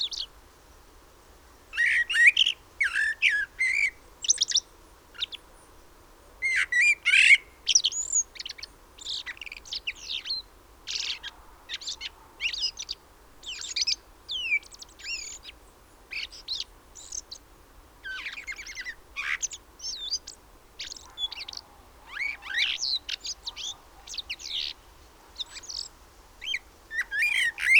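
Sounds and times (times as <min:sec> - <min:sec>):
common blackbird Turdus merula whistling and twittering: 0:01.8 - 0:04.6, 0:06.4 - 0:15.5, 0:18.1 - 0:24.8, 0:25.4 - 0:27.7.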